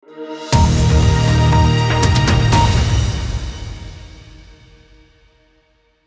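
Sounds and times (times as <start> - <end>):
news channel ident music: 0.5 - 5.2.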